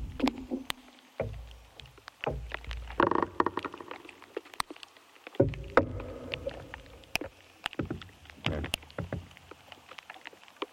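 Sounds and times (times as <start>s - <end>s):
knocking and creaking inside an ash tree: 0.0s - 4.1s, 5.4s - 7.0s, 7.7s - 9.4s
clicks and ticks inside an ash tree: 0.0s - 10.7s.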